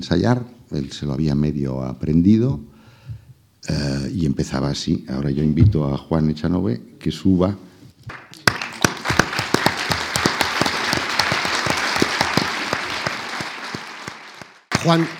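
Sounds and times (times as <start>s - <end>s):
speech: 0.0s - 2.7s, 3.6s - 8.2s, 14.8s - 15.1s
audience applause: 8.1s - 15.1s.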